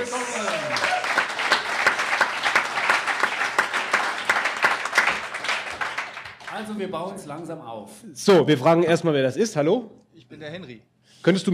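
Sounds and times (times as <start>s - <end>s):
crowd applause: 0.0s - 6.9s
speech: 6.7s - 11.5s.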